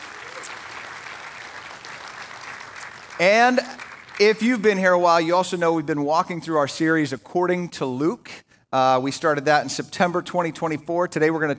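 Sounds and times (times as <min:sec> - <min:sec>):
audience applause: 0:00.0 - 0:04.4
speech: 0:03.2 - 0:11.5.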